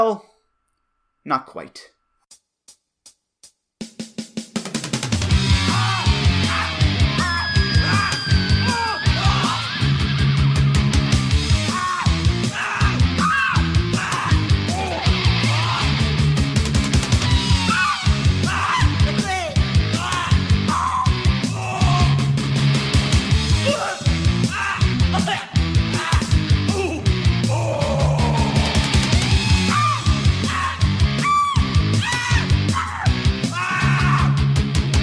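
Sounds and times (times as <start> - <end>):
speech: 0.0 - 0.3, 1.2 - 2.0
distorted guitars: 5.0 - 35.0
grungy punk rock song with simple repeating riff: 5.0 - 35.0
raw voice shouting over the band: 5.5 - 10.0, 11.5 - 16.2, 17.2 - 22.4, 23.5 - 34.5.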